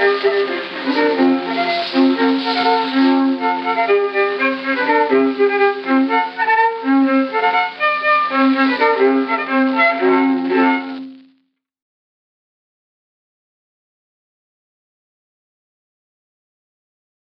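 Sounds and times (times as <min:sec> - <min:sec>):
violin playing a folk polka: 0:00.0 - 0:11.3.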